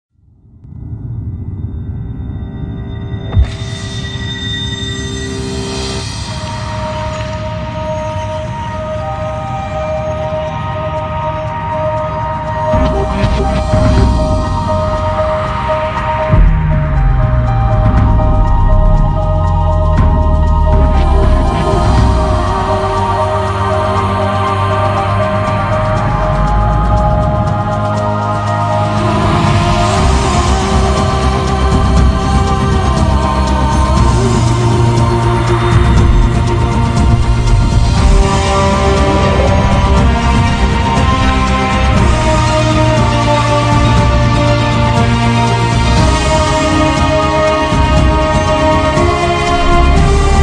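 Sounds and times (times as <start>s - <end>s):
instrumental background music: 3.2s - 50.4s.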